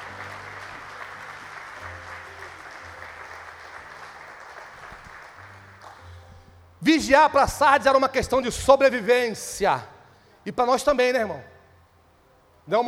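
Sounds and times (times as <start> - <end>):
audience applause: 0.0 - 6.1
speech: 6.8 - 11.5, 12.7 - 12.8.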